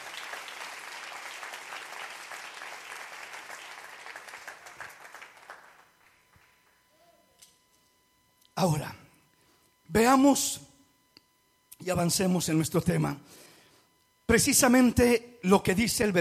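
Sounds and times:
applause: 0:00.0 - 0:06.9
speech: 0:08.6 - 0:09.0, 0:09.9 - 0:10.7, 0:11.9 - 0:13.4, 0:14.3 - 0:16.1.

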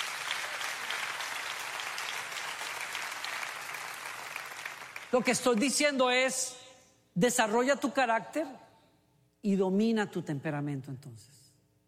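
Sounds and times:
audience applause: 0:00.0 - 0:05.1
speech: 0:05.1 - 0:06.6, 0:07.2 - 0:08.6, 0:09.4 - 0:11.4.

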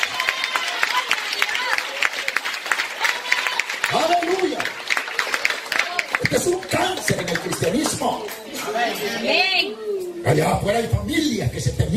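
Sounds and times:
audience applauding in praise: 0:00.0 - 0:09.0
speech: 0:07.0 - 0:11.9.

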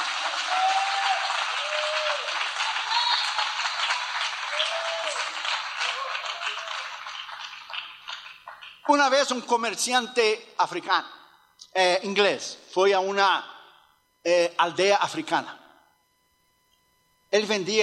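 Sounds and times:
audience applauding: 0:00.0 - 0:09.1
speech: 0:08.9 - 0:13.5, 0:14.2 - 0:15.6, 0:17.3 - 0:17.8.

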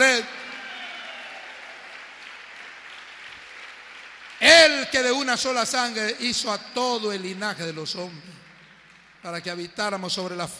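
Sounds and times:
audience applause: 0:00.0 - 0:04.9
speech: 0:04.8 - 0:08.5, 0:09.2 - 0:10.5.

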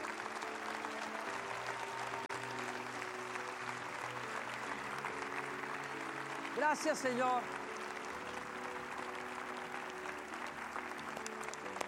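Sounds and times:
audience applauding in celebration: 0:00.0 - 0:11.8
speech: 0:06.6 - 0:07.6.

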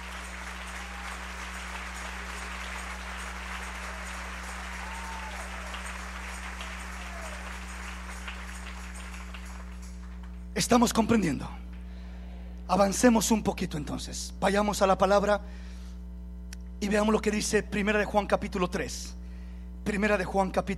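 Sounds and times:
audience clapping: 0:00.0 - 0:10.5
low hum: 0:00.0 - 0:12.7
speech: 0:10.6 - 0:11.6, 0:12.7 - 0:15.7, 0:16.8 - 0:19.2, 0:19.8 - 0:20.7.

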